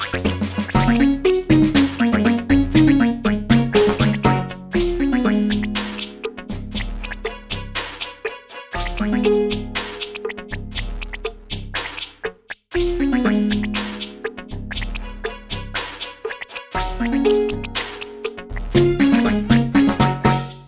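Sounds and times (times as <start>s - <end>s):
music loop: 0.0s - 20.6s.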